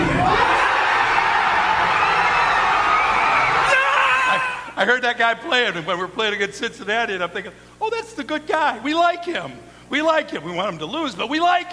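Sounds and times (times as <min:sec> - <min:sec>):
huge stadium crowd roaring after touchdown: 0:00.0 - 0:04.8
scattered shouts and whoops: 0:00.0 - 0:04.8
speech: 0:04.8 - 0:11.7.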